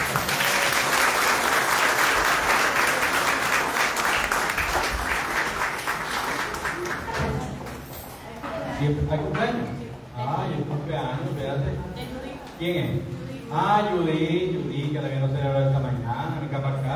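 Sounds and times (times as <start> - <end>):
audience applause: 0.0 - 7.6
speech: 8.8 - 9.8, 10.4 - 16.9.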